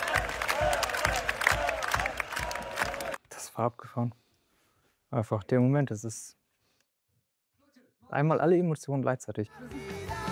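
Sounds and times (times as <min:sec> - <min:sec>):
concert crowd chanting a name: 0:00.0 - 0:03.2
scattered clapping: 0:00.0 - 0:03.2
speech: 0:03.6 - 0:04.2, 0:05.1 - 0:06.4, 0:08.1 - 0:10.0.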